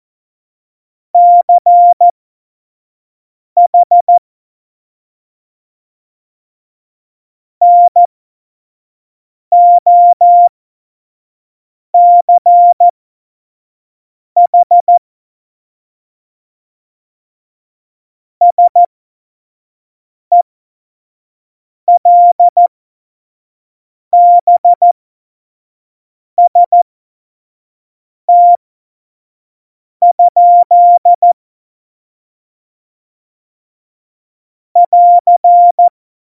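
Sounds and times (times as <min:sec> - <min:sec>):
CW Morse code beeps: 0:01.2 - 0:02.1, 0:03.7 - 0:04.2, 0:07.6 - 0:08.1, 0:09.6 - 0:10.5, 0:12.0 - 0:12.9, 0:14.5 - 0:15.0, 0:18.5 - 0:18.9, 0:22.0 - 0:22.7, 0:24.2 - 0:24.9, 0:26.4 - 0:26.8, 0:28.3 - 0:28.6, 0:30.0 - 0:31.4, 0:34.8 - 0:35.9.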